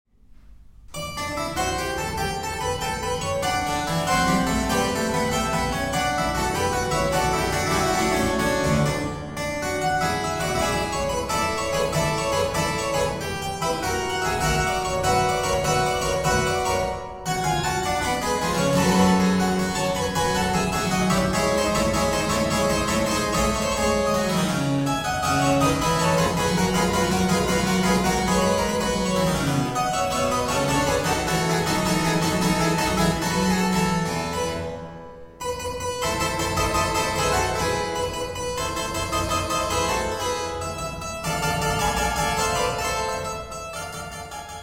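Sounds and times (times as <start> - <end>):
lively keyboard sonata in E major: 0.6 - 44.6.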